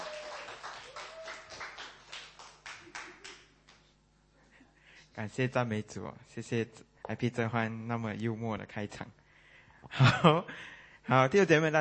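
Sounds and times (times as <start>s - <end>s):
audience applause welcoming a speaker: 0.0s - 3.5s
speech: 5.2s - 9.2s, 9.9s - 11.7s.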